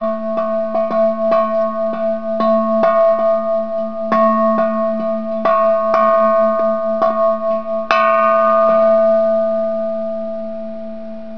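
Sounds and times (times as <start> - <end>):
bell: 0.0 - 10.7.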